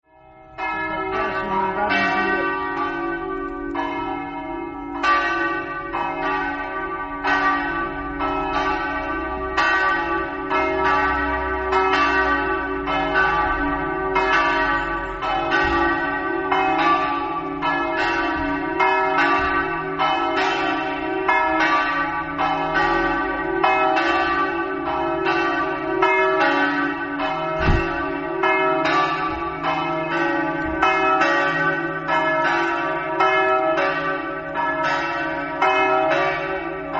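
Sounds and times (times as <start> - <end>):
bells ringing: 0.1 - 36.9.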